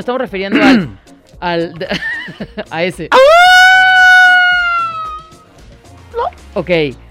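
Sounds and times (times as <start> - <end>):
speech: 0.0 - 3.7, 6.2 - 7.0
laughter: 1.8 - 2.7
person imitating coyote howl: 3.1 - 5.4.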